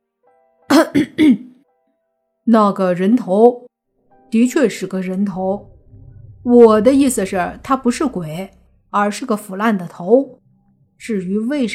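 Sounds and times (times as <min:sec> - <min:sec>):
cough: 0:00.7 - 0:01.6
speech: 0:00.9 - 0:01.5, 0:02.5 - 0:03.6, 0:04.3 - 0:05.7, 0:06.4 - 0:10.4, 0:11.0 - 0:11.7.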